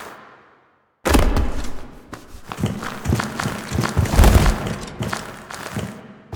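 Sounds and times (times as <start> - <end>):
foley sounds: 1.1 - 5.8.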